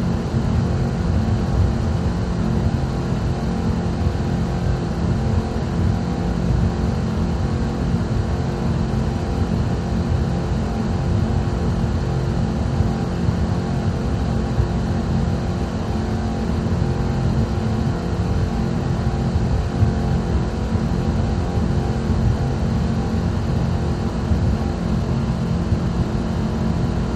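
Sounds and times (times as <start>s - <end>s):
offshore racing power boat engine: 0.0s - 27.1s.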